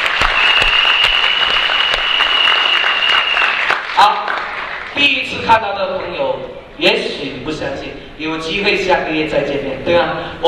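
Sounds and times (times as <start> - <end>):
audience applause at a speech event: 0.0 - 4.9
sustained high whistling tone: 0.2 - 3.8
speech: 5.4 - 10.4.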